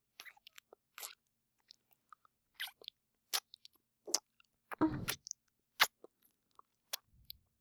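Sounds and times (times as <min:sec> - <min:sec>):
kissing sound: 0:05.0 - 0:05.9.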